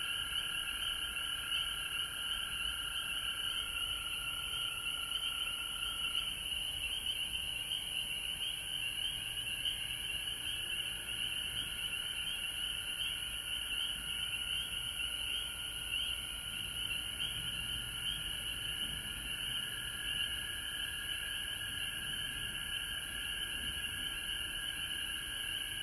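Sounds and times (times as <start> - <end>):
frog chorus: 0.0 - 25.8.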